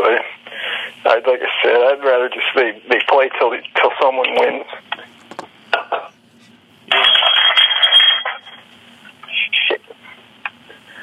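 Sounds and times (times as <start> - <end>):
speech: 1.1 - 6.0
glass object kicked and knocked over: 6.9 - 8.5.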